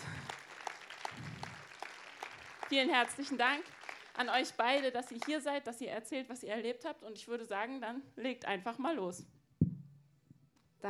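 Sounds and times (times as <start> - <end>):
audience applause: 0.0 - 4.9
speech: 2.7 - 9.4.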